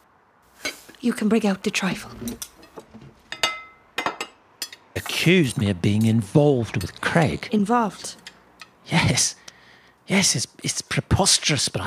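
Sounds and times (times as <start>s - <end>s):
speech: 1.0s - 2.5s, 5.0s - 8.2s, 8.9s - 9.4s, 10.1s - 11.8s
dishes and cutlery clinking as they are cleared away: 2.0s - 8.8s.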